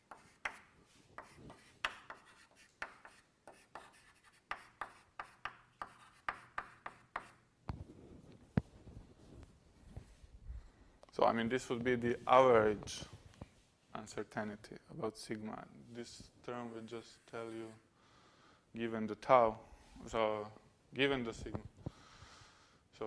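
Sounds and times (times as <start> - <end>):
writing on a board during a lecture: 0.0 - 7.4
speech: 11.2 - 13.1, 14.1 - 17.9, 18.8 - 21.7.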